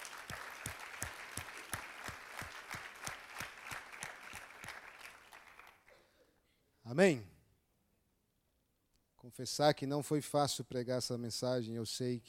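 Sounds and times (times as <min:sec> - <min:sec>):
audience applauding: 0:00.0 - 0:05.9
speech: 0:06.9 - 0:07.3, 0:09.4 - 0:12.2.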